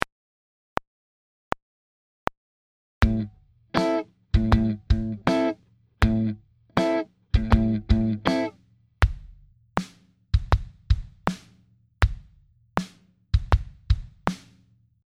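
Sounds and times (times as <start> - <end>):
kick and snare drum groove: 3.0 - 14.7.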